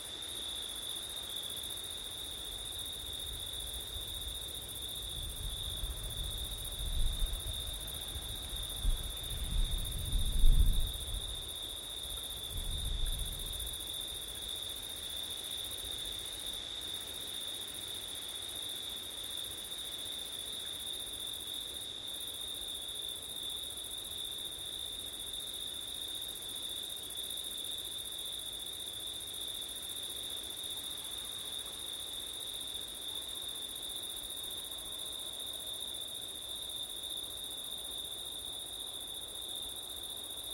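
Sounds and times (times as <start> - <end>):
crickets trilling: 0.2 - 40.5
low rumbling wind gusts: 8.8 - 11.2.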